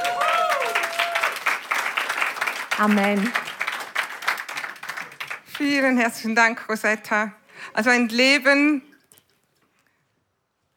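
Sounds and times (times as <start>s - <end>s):
whoop or whistle: 0.0s - 1.4s
large audience applause: 0.0s - 5.7s
speech: 2.8s - 3.4s, 5.6s - 8.9s.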